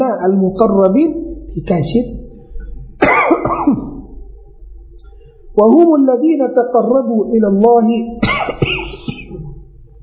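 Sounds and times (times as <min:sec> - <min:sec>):
speech: 0:00.2 - 0:02.2, 0:05.6 - 0:08.3
person coughing: 0:03.0 - 0:04.0, 0:08.2 - 0:09.6.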